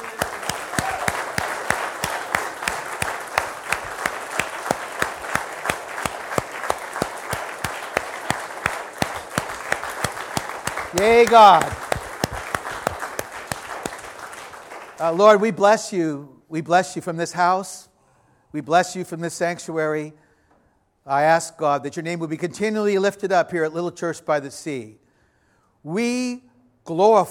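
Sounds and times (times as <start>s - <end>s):
audience applauding loudly: 0.0s - 15.2s
speech: 11.0s - 11.8s, 15.0s - 17.9s, 18.5s - 20.2s, 21.0s - 25.0s, 25.8s - 27.2s.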